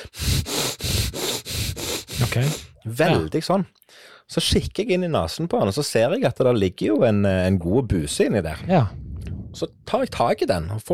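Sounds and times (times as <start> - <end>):
voice imitating infant's heavy breathing: 0.0 - 3.3
speech: 2.3 - 10.9.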